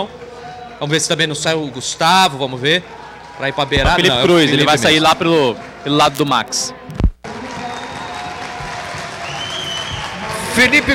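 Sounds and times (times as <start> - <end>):
speech: 0.0 - 0.2, 0.8 - 7.0, 10.6 - 10.9
stadium crowd applauding substituted players: 2.8 - 10.9.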